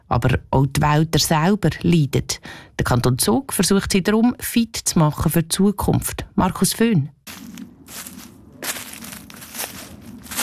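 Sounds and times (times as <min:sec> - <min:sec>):
speech: 0:00.1 - 0:08.2
footsteps on leaves and twigs in a forest: 0:07.3 - 0:10.4
low rumble: 0:07.3 - 0:10.4.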